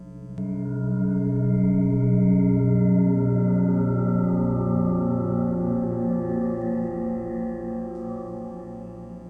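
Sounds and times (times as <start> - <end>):
bell: 0.0 - 9.2.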